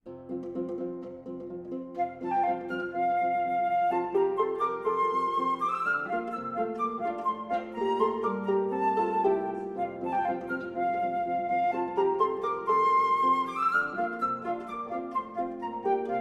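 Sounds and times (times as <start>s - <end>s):
harp: 0.1s - 16.1s
flute: 1.9s - 16.1s.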